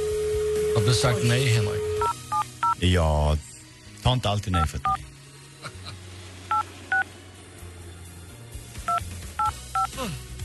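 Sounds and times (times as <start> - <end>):
speech: 0.8 - 2.0, 2.8 - 5.1
two-tone touch-tone beeps of a phone number being keyed in: 2.0 - 2.8, 6.5 - 7.0, 8.9 - 10.0.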